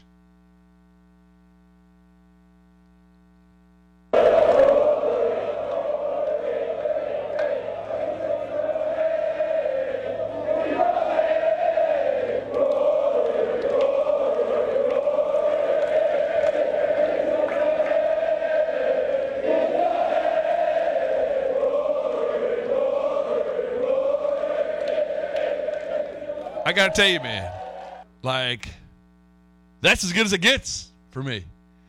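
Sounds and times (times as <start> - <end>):
golf crowd chanting at first tee: 4.2 - 28.0
speech: 26.7 - 27.6, 28.2 - 28.8, 29.8 - 31.5.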